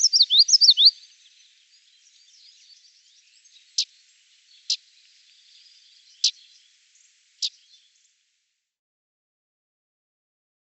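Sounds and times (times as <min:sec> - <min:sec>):
Common Yellowthroat bird calls: 0:00.0 - 0:08.1.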